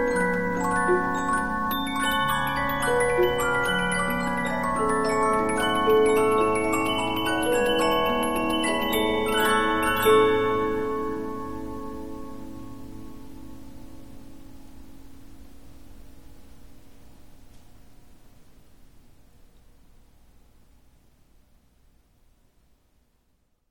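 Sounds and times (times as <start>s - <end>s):
Polyphon 15-inch disc music box playing: 0.0s - 11.9s.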